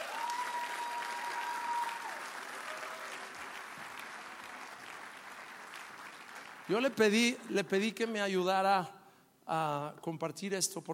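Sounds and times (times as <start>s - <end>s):
audience applause: 0.0s - 7.0s
speech: 6.7s - 10.9s.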